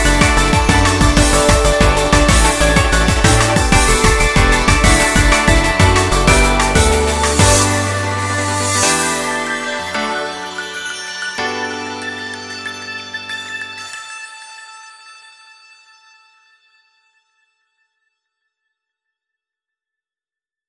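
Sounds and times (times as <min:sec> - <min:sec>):
karaoke singing: 0:00.0 - 0:13.1.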